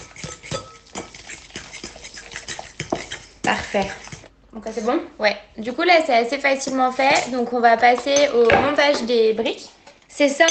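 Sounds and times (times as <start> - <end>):
stirring a feta mixture seasoned with pepper: 0.0 - 4.9, 6.3 - 9.1
speech: 3.5 - 10.4.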